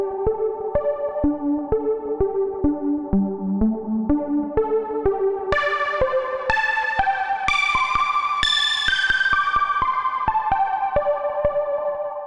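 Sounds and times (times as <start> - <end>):
synthesizer: 0.0 - 12.2.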